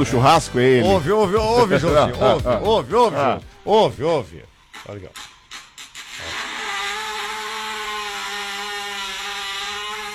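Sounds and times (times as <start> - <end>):
speech: 0.0 - 5.3
laughter: 0.9 - 3.4
blender running: 5.2 - 10.1.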